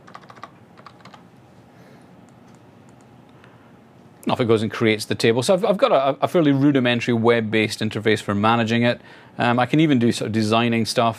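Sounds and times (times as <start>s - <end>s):
typing on a computer keyboard: 0.0s - 1.2s
speech: 4.2s - 11.1s.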